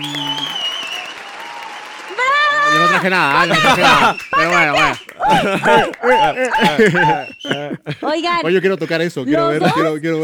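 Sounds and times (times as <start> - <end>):
audience applause: 0.0 - 7.6
laughter: 2.8 - 10.2
speech: 3.0 - 10.2.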